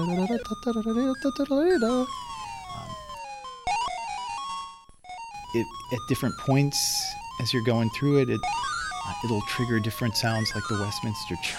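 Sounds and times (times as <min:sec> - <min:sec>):
speech: 0:00.0 - 0:02.3, 0:05.5 - 0:11.5
bright synthesized video game music rendering a march: 0:00.0 - 0:11.5.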